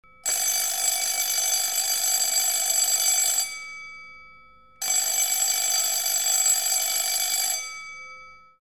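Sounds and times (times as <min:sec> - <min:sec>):
bell: 0:00.0 - 0:08.6.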